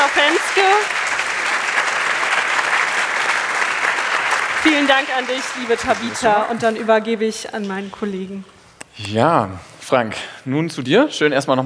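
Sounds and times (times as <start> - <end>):
audience applause: 0.0 - 7.0
speech: 4.6 - 11.6.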